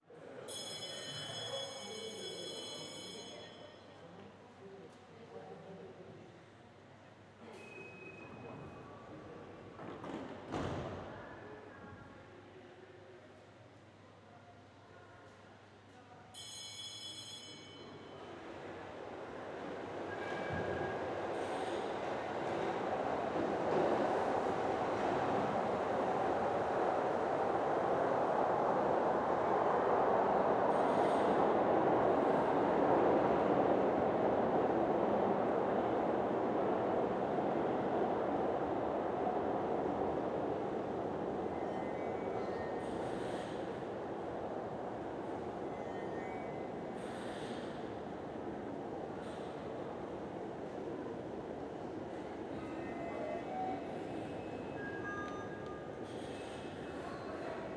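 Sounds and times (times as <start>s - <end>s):
tram leaving underground: 17.7s - 57.7s.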